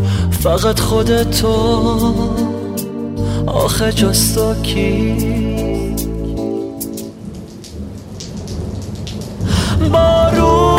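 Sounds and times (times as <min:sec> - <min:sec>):
speech: 0:00.4 - 0:02.6, 0:03.4 - 0:05.4
gentle rain falling: 0:03.6 - 0:10.7
thunder: 0:06.9 - 0:10.7.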